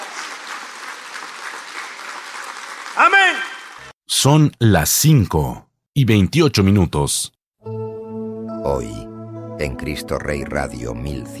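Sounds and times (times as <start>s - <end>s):
applause for the Lord at a religious gathering: 0.0s - 3.9s
speech: 4.2s - 7.8s, 8.6s - 11.3s.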